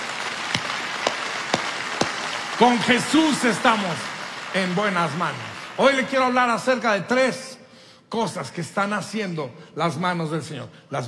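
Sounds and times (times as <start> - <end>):
audience applause: 0.0 - 6.4
speech: 2.6 - 7.5, 8.1 - 11.0.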